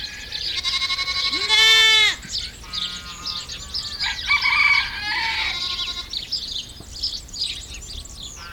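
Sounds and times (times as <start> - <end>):
goats bleating: 0.1 - 3.6, 5.1 - 6.2.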